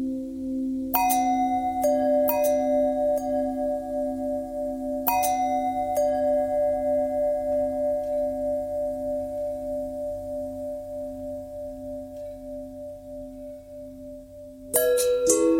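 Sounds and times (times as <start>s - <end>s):
long pentatonic bell tones: 0.0s - 14.2s, 14.8s - 15.5s.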